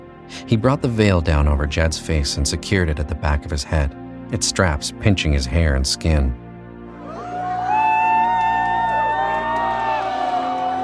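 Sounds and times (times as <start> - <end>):
speech: 0.4 - 6.4
large audience applauding: 7.1 - 10.8.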